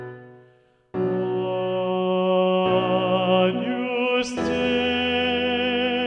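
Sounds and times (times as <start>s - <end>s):
sacred mass music: 1.0s - 6.0s.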